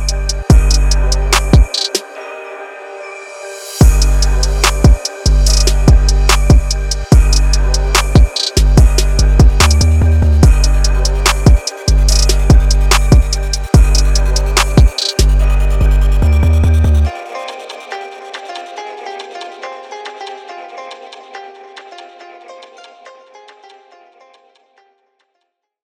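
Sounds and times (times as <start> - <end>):
trap beat: 0.0 - 2.1, 3.8 - 22.0.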